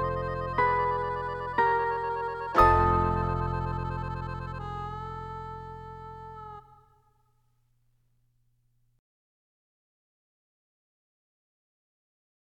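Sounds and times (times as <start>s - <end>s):
solo with accompaniment: 0.0s - 7.0s.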